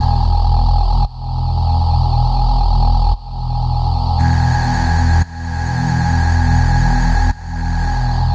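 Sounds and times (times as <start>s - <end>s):
electric bass: 0.0s - 8.3s
electric motor: 4.2s - 8.3s.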